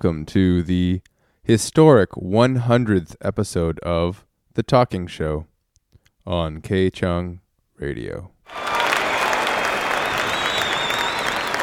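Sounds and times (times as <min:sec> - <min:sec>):
speech: 0:00.0 - 0:05.5, 0:06.2 - 0:08.6
audience applause: 0:08.5 - 0:11.6
faint whistles and cheers: 0:08.5 - 0:11.6.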